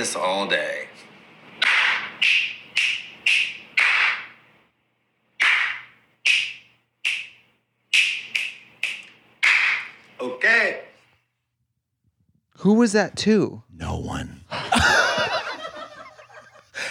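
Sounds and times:
speech: 0:00.0 - 0:01.1, 0:12.6 - 0:14.6
loud finger snap: 0:01.6 - 0:04.4, 0:05.4 - 0:10.0
loud hand clap: 0:01.6 - 0:04.4, 0:05.4 - 0:10.0
laughter: 0:14.5 - 0:16.8.

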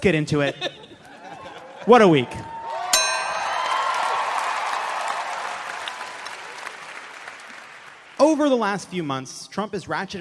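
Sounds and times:
speech: 0:00.0 - 0:00.8, 0:01.8 - 0:02.5, 0:08.2 - 0:10.1
laughter: 0:00.4 - 0:02.4
audience applause: 0:02.1 - 0:08.2
sharp bright ding: 0:03.0 - 0:04.3.

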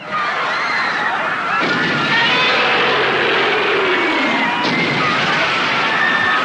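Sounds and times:
crowd screaming in film clip: 0:00.0 - 0:06.4
Godzilla stomping in film clip: 0:01.6 - 0:06.4.

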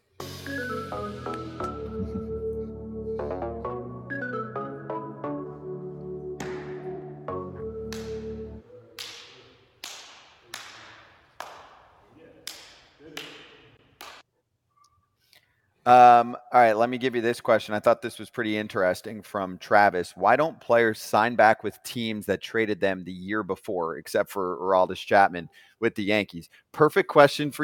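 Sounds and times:
short musical passage: 0:00.2 - 0:05.2
hands slapping in a high five: 0:06.4 - 0:07.0, 0:07.8 - 0:14.3
speech: 0:15.9 - 0:27.6.

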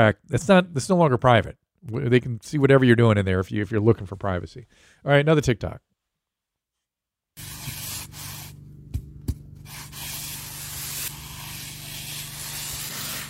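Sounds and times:
speech: 0:00.0 - 0:05.9
cutting wet cement: 0:09.7 - 0:13.2.

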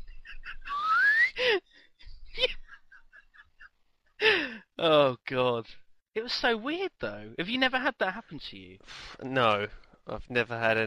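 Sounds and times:
giggling laughter: 0:00.0 - 0:04.4
person whistling an upward glide mimicking a slide whistle: 0:00.7 - 0:01.4
speech: 0:04.8 - 0:10.8.

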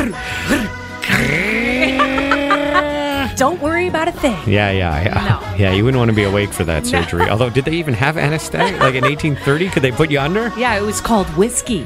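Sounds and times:
speech: 0:00.0 - 0:00.6, 0:03.4 - 0:11.8
voice imitating a chainsaw: 0:01.0 - 0:03.0
laughter: 0:01.0 - 0:03.5, 0:04.5 - 0:10.4.

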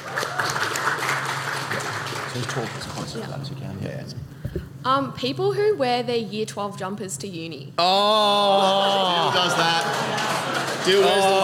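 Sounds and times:
audience applause: 0:00.0 - 0:02.9, 0:09.4 - 0:11.4
speech: 0:02.3 - 0:11.4.

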